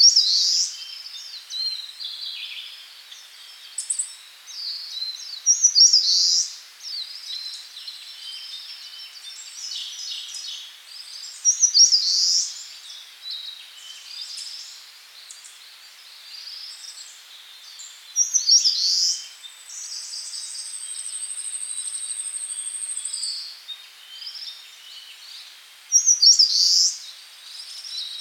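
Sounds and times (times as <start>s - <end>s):
birds in Karuizawa: 0.0s - 28.1s.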